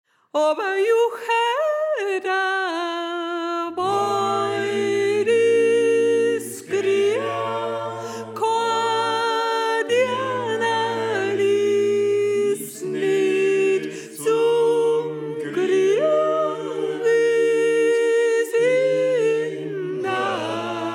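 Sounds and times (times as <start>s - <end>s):
soprano voice: 0.4s - 20.9s.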